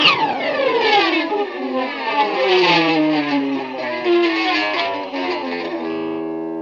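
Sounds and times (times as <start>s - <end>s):
guitar with dirty effects: 0.0s - 6.6s.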